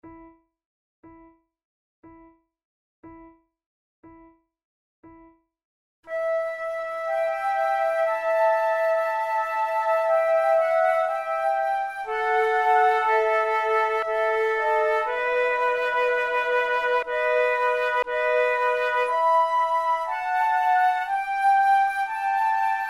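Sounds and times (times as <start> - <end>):
flute sonata adagio: 6.1 - 22.8.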